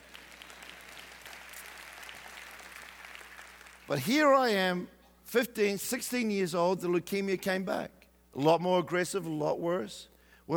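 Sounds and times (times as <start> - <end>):
audience clapping: 0.0 - 4.1
speech: 3.9 - 10.5.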